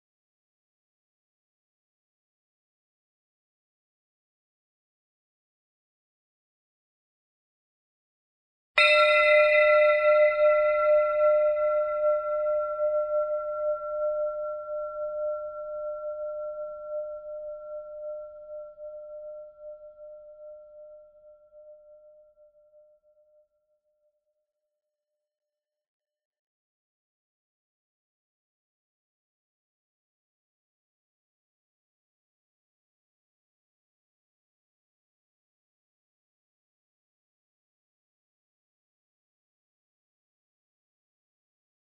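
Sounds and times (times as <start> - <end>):
bell: 8.8 - 23.5.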